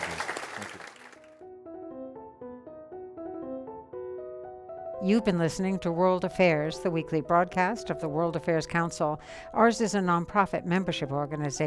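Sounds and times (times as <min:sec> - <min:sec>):
audience applause: 0:00.0 - 0:01.3
speech: 0:05.0 - 0:11.6.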